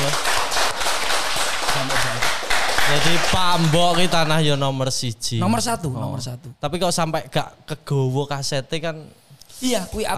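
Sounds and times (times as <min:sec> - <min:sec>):
audience clapping: 0:00.0 - 0:04.7
speech: 0:03.0 - 0:10.1.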